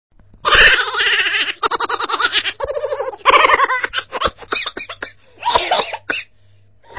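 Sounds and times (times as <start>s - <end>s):
person laughing: 0.6s - 6.1s.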